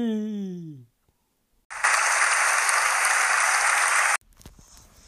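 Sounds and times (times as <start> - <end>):
speech: 0.0 - 0.3
audience applause: 1.7 - 4.2.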